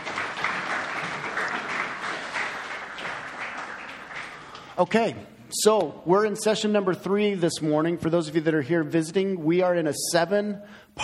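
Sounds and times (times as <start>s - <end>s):
crowd applause: 0.0s - 4.8s
speech: 4.8s - 11.0s.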